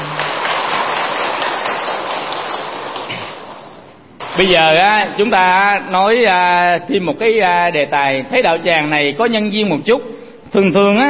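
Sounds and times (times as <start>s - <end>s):
audience applause: 0.0s - 4.9s
speech: 4.4s - 11.0s.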